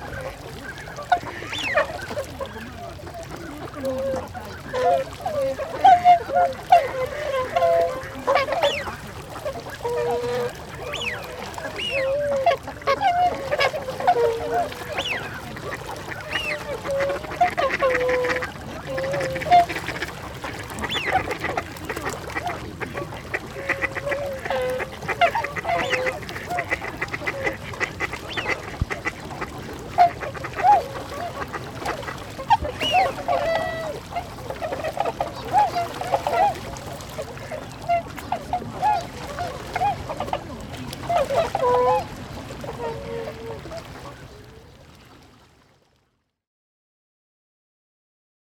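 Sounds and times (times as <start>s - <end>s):
swans at Lake Suwa: 0.0s - 46.0s.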